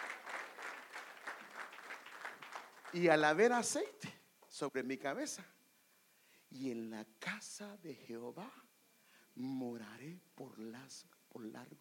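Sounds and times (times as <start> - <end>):
audience applause: 0.0 - 3.2
speech: 2.9 - 5.6, 6.5 - 8.7, 9.4 - 11.7.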